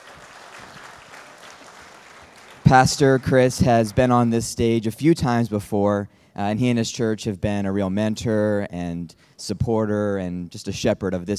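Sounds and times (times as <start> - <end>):
audience applause for a pastor welcomed onto a church stage: 0.0 - 4.5
speech: 2.7 - 11.3.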